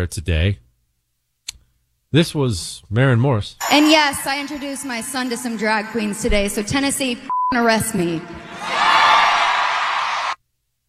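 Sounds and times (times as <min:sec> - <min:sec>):
speech: 0:00.0 - 0:00.6, 0:02.1 - 0:08.8
crowd cheering and whooping: 0:03.6 - 0:05.7, 0:08.3 - 0:10.4.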